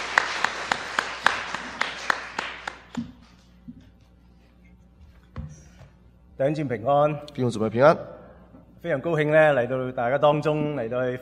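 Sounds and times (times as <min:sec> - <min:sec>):
audience applause welcoming a speaker: 0:00.0 - 0:03.1
speech: 0:06.4 - 0:08.2, 0:08.8 - 0:11.2.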